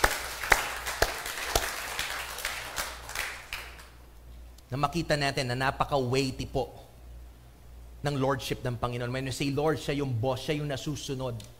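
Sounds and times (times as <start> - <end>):
church congregation clapping during a sermon: 0.0 - 4.0
speech: 4.7 - 6.8, 8.0 - 11.5.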